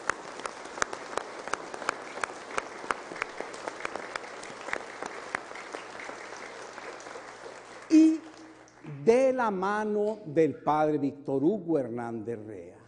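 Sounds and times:
audience applauding in a church: 0.0 - 9.0
speech: 9.0 - 12.8.

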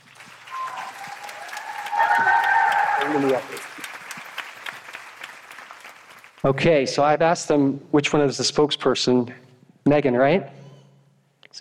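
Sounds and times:
audience clapping for a children's singing group: 0.0 - 6.7
speech: 3.1 - 3.7, 6.4 - 10.6.

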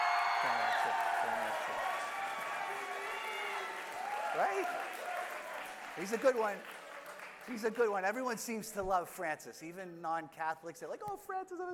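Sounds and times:
audience applause: 0.0 - 8.4
speech: 4.4 - 4.9, 6.0 - 6.8, 7.4 - 11.7.

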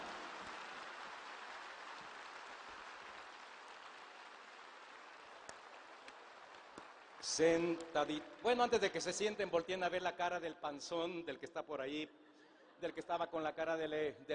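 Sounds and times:
audience applause: 0.0 - 8.6
speech: 7.2 - 12.2, 12.8 - 14.3.

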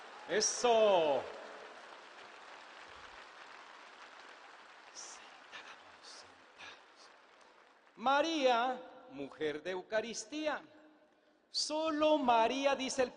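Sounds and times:
audience applause: 0.0 - 8.3
speech: 0.3 - 1.4, 8.0 - 10.7, 11.5 - 13.1.

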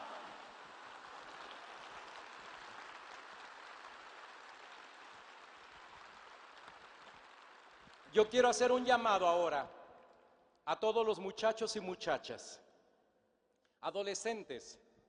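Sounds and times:
audience applauding loudly: 0.0 - 8.1
speech: 8.1 - 9.8, 10.7 - 12.6, 13.8 - 14.8.

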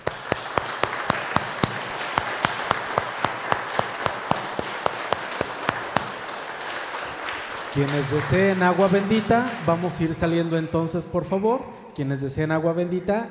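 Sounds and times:
audience applauding in church: 0.0 - 10.2
speech: 7.8 - 13.2.

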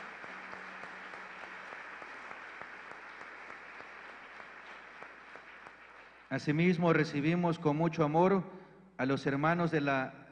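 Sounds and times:
audience applause: 0.0 - 6.4
speech: 6.3 - 10.2.

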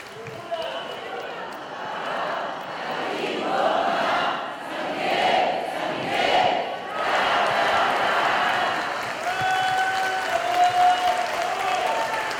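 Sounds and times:
crowd applause: 0.0 - 4.8, 5.8 - 12.3
crowd cheering and whooping: 7.0 - 12.3.

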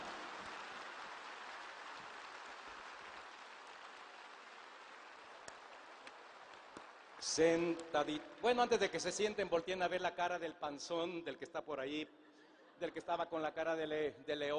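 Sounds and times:
audience applause: 0.0 - 8.6
speech: 7.2 - 12.2, 12.8 - 14.5.

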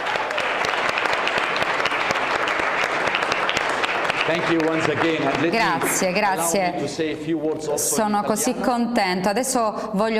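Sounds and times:
audience applause: 0.0 - 6.6
speech: 4.3 - 10.1.

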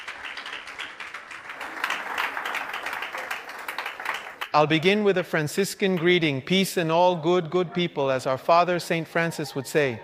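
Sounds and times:
audience applause: 0.0 - 4.5
speech: 4.5 - 10.0.

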